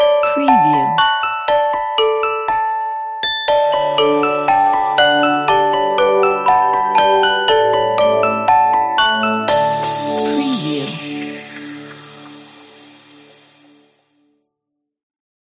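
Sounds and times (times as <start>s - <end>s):
magic music box melody: 0.2s - 10.6s.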